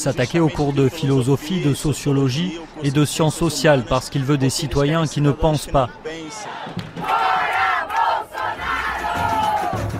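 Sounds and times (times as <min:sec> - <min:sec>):
speech: 0:00.0 - 0:07.1
protest crowd chanting at demonstrations in Brazil: 0:05.3 - 0:09.9.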